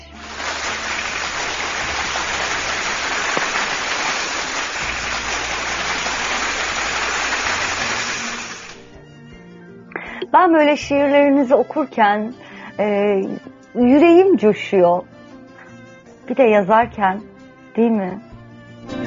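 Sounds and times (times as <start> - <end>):
audience applause: 0.0 - 9.0
speech: 10.3 - 15.1, 16.3 - 18.3.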